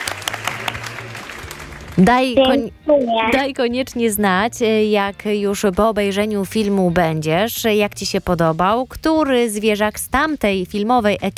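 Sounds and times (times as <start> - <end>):
applause: 0.0 - 2.4
fanfare: 2.0 - 3.7
speech: 2.0 - 11.3.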